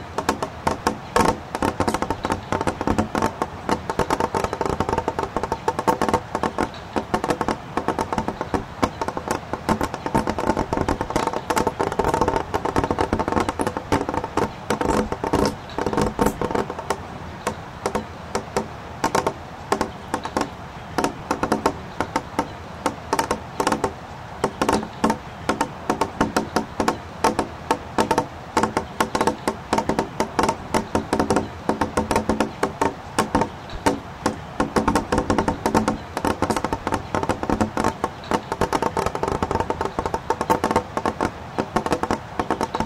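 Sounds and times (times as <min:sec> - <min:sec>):
water trickling and dripping through snow: 0:00.0 - 0:42.8.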